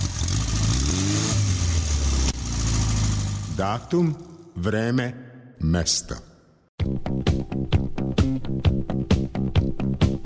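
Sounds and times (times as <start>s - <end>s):
Zastava 750 (Fića) classic small car engine revving: 0.0s - 3.9s
speech: 3.6s - 10.0s.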